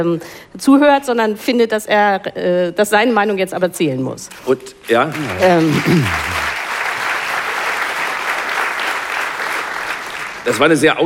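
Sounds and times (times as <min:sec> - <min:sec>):
speech: 0:00.0 - 0:06.4, 0:10.4 - 0:11.0
audience clapping: 0:04.4 - 0:10.8.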